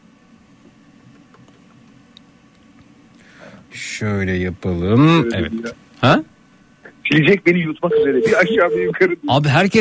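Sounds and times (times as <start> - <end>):
speech: 4.0 - 6.3, 7.1 - 9.7
touch-tone dialing beeps: 7.9 - 9.0.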